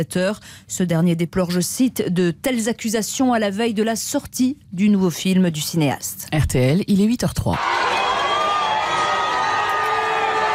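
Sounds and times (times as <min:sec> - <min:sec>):
speech: 0:00.0 - 0:08.1
thousands of Brazilians cheering Lula on his release from prison: 0:07.6 - 0:10.5.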